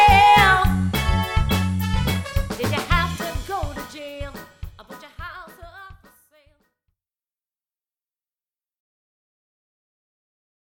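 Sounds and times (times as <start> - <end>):
groove music: 0.0 - 6.2.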